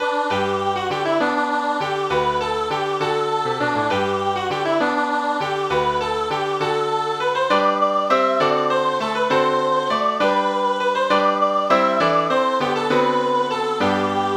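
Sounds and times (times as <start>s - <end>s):
old Christmas song: 0.0s - 14.3s.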